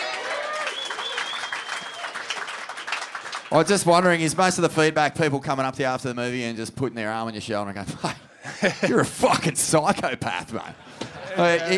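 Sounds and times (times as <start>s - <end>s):
crowd applause: 0.0s - 3.8s
whistle-like tone: 0.7s - 2.2s
speech: 3.5s - 11.7s
laughter: 7.9s - 9.6s, 10.3s - 11.7s.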